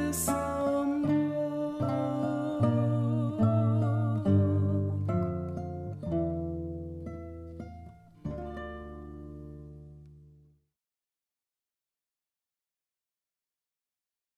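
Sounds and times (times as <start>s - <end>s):
guitar: 0.0s - 10.7s.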